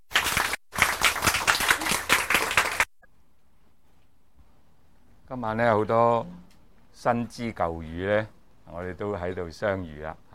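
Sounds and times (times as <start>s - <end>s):
warm audience applause: 0.1s - 2.9s
speech: 5.3s - 6.4s, 7.0s - 10.3s.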